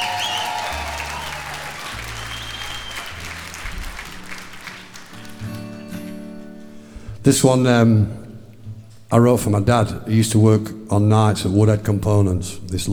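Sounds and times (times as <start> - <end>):
audience applause: 0.0 - 6.2
speech: 7.3 - 8.2, 9.1 - 12.9.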